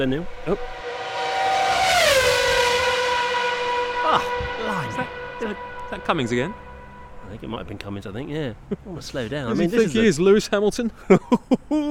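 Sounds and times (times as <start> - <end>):
speech: 0.0 - 0.8, 4.1 - 11.8
loud car engine roaring past on the road: 0.0 - 8.3.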